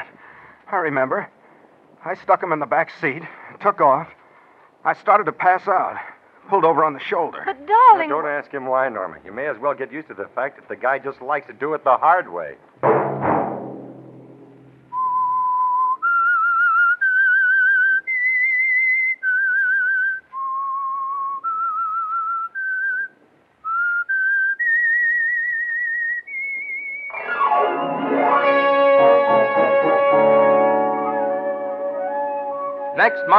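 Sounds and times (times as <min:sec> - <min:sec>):
speech: 0:00.7 - 0:01.4, 0:02.0 - 0:04.2, 0:04.8 - 0:13.0
whistled radio show theme tune: 0:14.9 - 0:23.1, 0:23.7 - 0:33.3
burst of orchestral music: 0:27.1 - 0:33.3.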